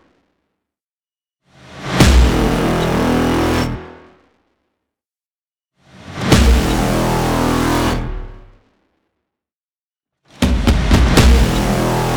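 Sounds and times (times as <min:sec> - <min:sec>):
trailer sound effects pack: 0:02.0 - 0:03.2, 0:06.2 - 0:08.5, 0:10.4 - 0:12.1.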